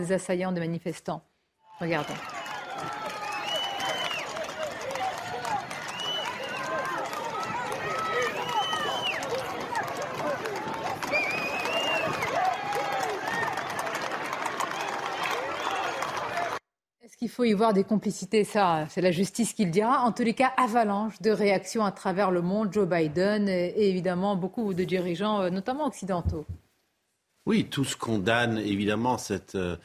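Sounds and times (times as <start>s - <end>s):
speech: 0.0s - 3.0s, 17.2s - 26.6s, 27.4s - 29.8s
crowd applauding and cheering mounted police: 1.7s - 16.6s.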